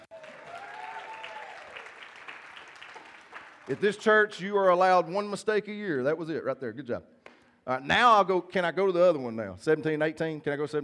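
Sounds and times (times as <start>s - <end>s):
crowd applauding: 0.0s - 4.2s
speech: 3.7s - 10.8s.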